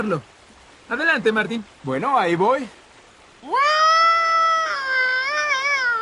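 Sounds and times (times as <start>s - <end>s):
speech: 0.0s - 2.8s
person imitating a moose's bellowing call: 3.4s - 6.0s.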